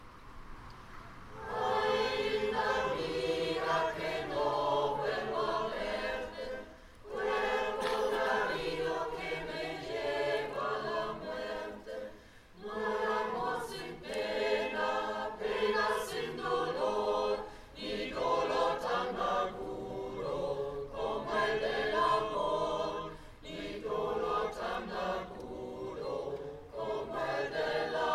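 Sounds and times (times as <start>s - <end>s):
choirs singing: 1.3s - 28.1s.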